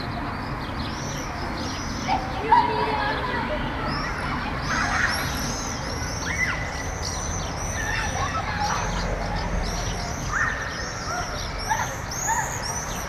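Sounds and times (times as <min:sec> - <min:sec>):
children playing on an elementary school playground: 0:00.0 - 0:13.0.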